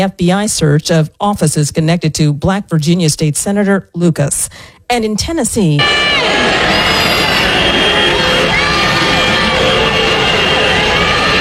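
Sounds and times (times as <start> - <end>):
speech: 0.0 - 6.9
protesters shouting and cheering outside the Tennessee state legislature: 5.8 - 11.3
whistle-like tones: 6.1 - 11.0.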